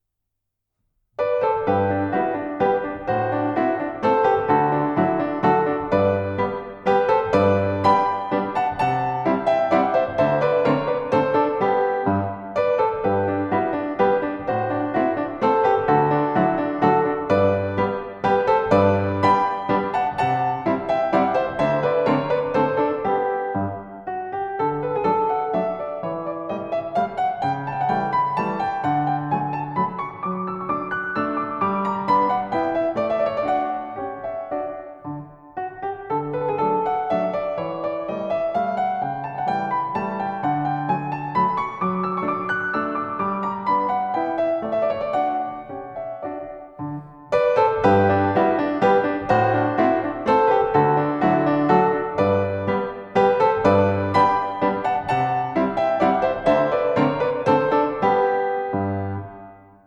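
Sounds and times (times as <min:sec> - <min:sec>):
piano waltz: 0:01.2 - 0:59.8.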